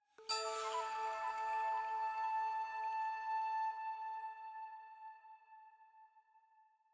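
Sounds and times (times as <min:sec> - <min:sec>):
chime: 0:00.2 - 0:04.2
item flute jingle: 0:00.2 - 0:05.8.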